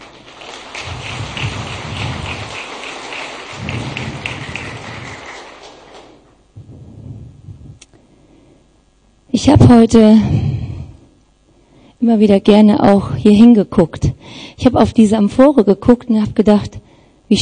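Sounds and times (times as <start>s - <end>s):
crowd clapping: 0.0s - 6.4s
speech: 9.5s - 10.4s, 12.0s - 17.3s.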